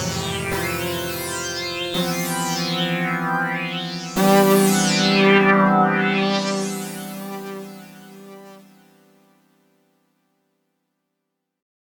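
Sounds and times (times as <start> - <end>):
delay effect: 0.0 - 5.8.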